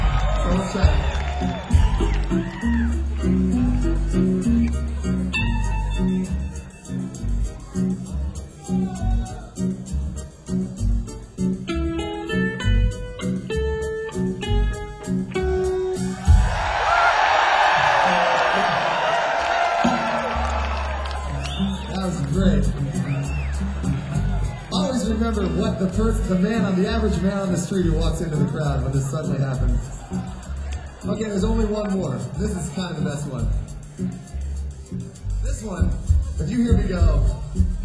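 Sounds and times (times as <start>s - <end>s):
crowd cheering and shouting: 0.0s - 4.5s, 7.8s - 9.8s, 15.8s - 27.1s, 29.5s - 33.1s
band music with a heavy bass beat: 0.0s - 37.8s
speech: 0.5s - 3.5s, 26.3s - 30.0s, 31.1s - 34.2s, 35.6s - 37.6s.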